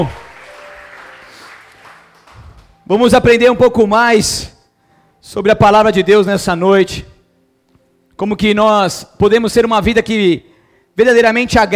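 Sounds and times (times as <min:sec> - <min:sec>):
speech: 0:00.0 - 0:00.2, 0:02.9 - 0:04.6, 0:05.2 - 0:07.1, 0:08.2 - 0:11.7
audience applauding: 0:00.0 - 0:02.8.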